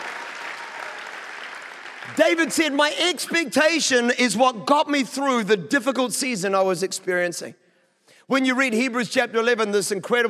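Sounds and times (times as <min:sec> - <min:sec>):
audience clapping hands: 0:00.0 - 0:03.2
speech: 0:02.1 - 0:07.6, 0:08.3 - 0:10.2.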